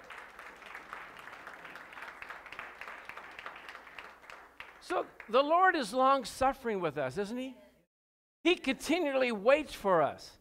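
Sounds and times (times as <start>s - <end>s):
crowd applauding: 0.0s - 5.6s
speech: 4.9s - 7.6s, 8.4s - 10.3s.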